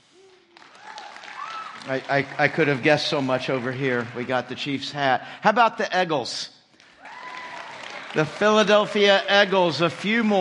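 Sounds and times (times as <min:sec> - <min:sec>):
audience applause: 0:00.0 - 0:04.9, 0:06.8 - 0:10.3
whoops and cheers: 0:00.1 - 0:01.9, 0:07.0 - 0:09.3
speech: 0:01.8 - 0:06.6, 0:08.2 - 0:10.3.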